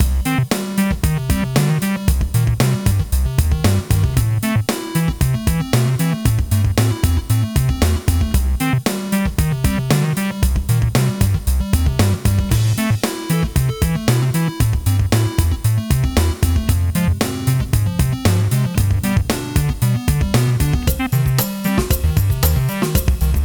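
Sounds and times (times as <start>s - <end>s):
quirky arcade chiptune music: 0.0s - 23.4s.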